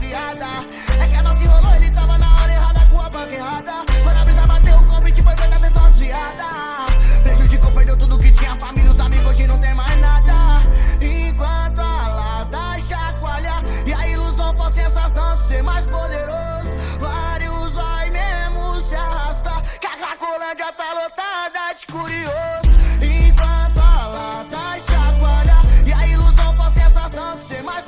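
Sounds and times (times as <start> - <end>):
deep bass: 0.9 - 3.2, 3.9 - 6.2, 6.9 - 19.7, 22.6 - 24.1, 24.9 - 27.2.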